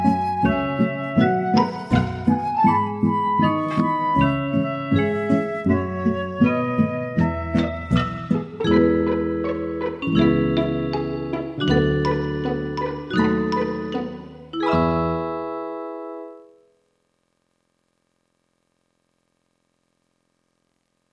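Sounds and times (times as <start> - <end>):
backing track: 0.0 - 15.6.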